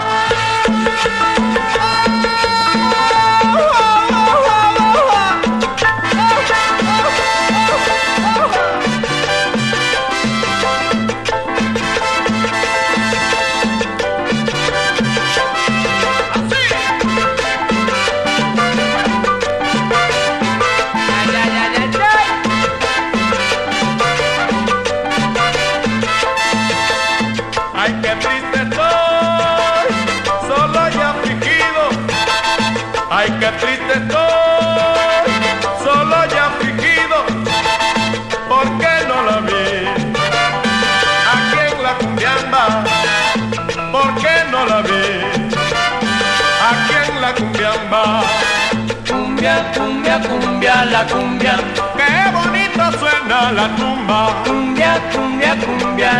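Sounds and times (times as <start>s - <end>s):
cumbia music: 0.0s - 56.1s.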